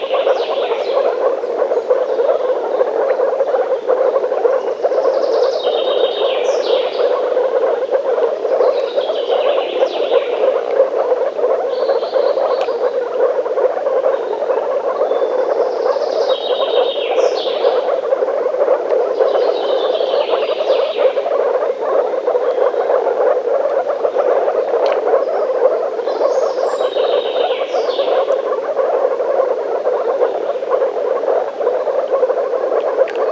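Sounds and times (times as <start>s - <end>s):
frogs croaking in chorus: 0.0s - 33.3s.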